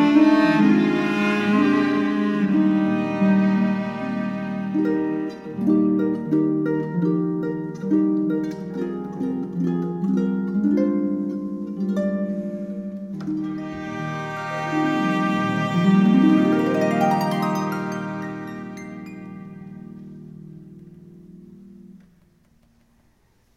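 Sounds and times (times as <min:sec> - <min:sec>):
cello: 0:00.0 - 0:06.8, 0:11.2 - 0:22.3
violin: 0:00.0 - 0:09.7, 0:12.4 - 0:21.2
harp: 0:00.0 - 0:23.0.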